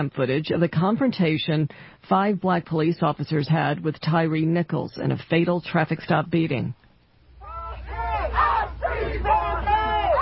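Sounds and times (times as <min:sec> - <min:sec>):
speech: 0:00.0 - 0:06.8
protest crowd shouting in the street: 0:07.4 - 0:10.2.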